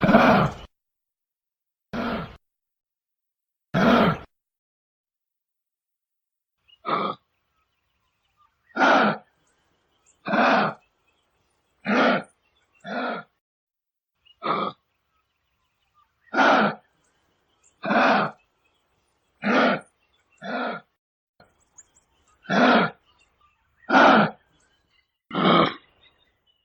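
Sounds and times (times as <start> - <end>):
kangaroo: 0.0 - 0.7, 2.0 - 2.4, 3.8 - 4.3, 8.7 - 9.4, 10.2 - 10.8, 11.8 - 13.4, 16.3 - 16.9, 17.8 - 18.4, 19.4 - 20.9, 22.4 - 23.0, 23.8 - 24.6.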